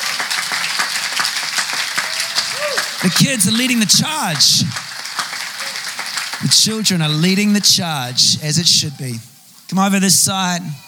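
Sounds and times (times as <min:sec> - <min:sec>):
church congregation clapping in unison at a baptism: 0:00.0 - 0:08.4
speech: 0:03.0 - 0:04.8, 0:06.4 - 0:10.8.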